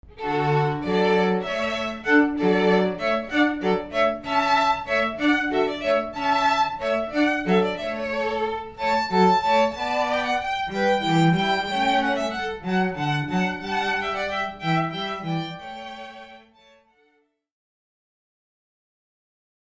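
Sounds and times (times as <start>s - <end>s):
hornpipe-style music: 0.2s - 16.6s.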